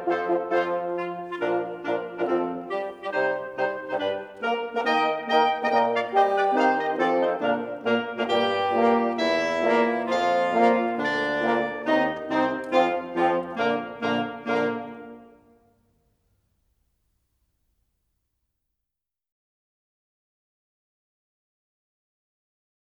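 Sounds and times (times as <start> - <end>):
sextet playing a march: 0.0 - 15.6.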